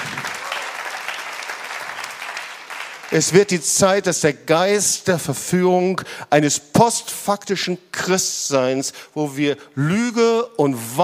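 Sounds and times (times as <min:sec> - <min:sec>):
audience applause: 0:00.0 - 0:03.3
speech: 0:03.1 - 0:11.0.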